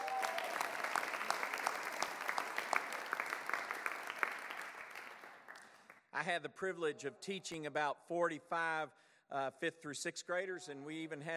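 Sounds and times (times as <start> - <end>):
audience applause: 0.0 - 5.9
speech: 6.2 - 11.3.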